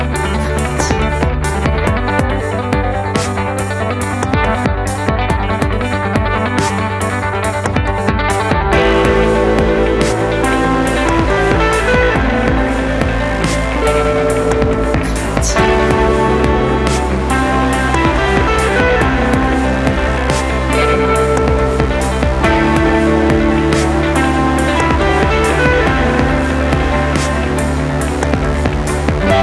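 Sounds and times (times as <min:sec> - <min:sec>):
electronic music: 0:00.0 - 0:29.4.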